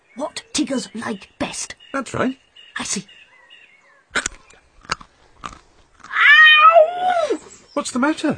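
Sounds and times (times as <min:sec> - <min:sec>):
speech: 0:00.6 - 0:03.2, 0:07.8 - 0:08.3
crunching bites of a thistle: 0:04.2 - 0:06.2
strained high-pitched yowl: 0:06.0 - 0:07.5.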